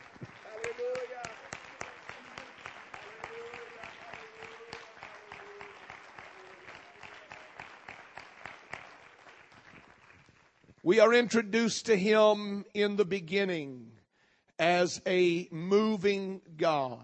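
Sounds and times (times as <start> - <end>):
audience hand clapping: 0.0 - 10.8
speech: 10.9 - 13.9, 14.6 - 17.0.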